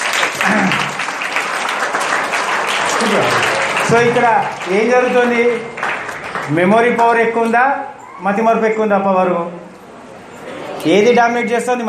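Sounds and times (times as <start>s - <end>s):
audience clapping during a Telugu talk: 0.0s - 7.3s
speech: 3.0s - 5.8s, 6.5s - 9.7s, 10.8s - 11.8s.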